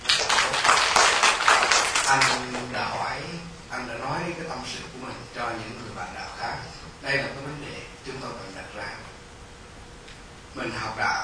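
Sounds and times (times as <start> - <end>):
audience applause: 0.0 - 2.7
speech: 2.1 - 2.6, 3.8 - 9.0, 10.6 - 11.2.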